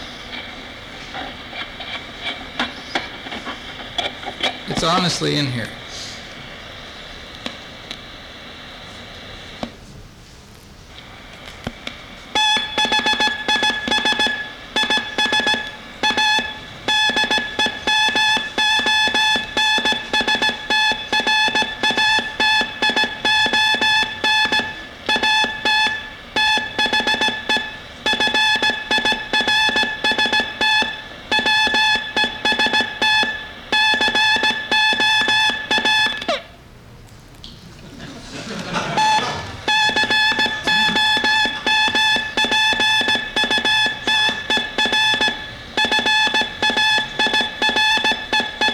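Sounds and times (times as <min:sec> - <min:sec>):
speech: 0:04.8 - 0:05.8
Morse code at 15 words per minute: 0:12.4 - 0:36.3, 0:38.7 - 0:48.7
laughter: 0:37.6 - 0:39.7, 0:40.6 - 0:41.7.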